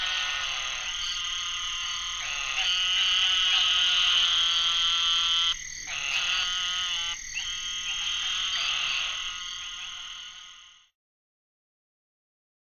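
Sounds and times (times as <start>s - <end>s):
Eastern narrow-mouthed toad calling: 0.0s - 10.9s.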